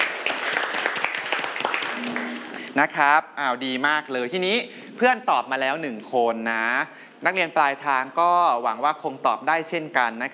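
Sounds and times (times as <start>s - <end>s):
students clapping in a classroom: 0.0s - 2.7s
speech: 2.8s - 10.3s.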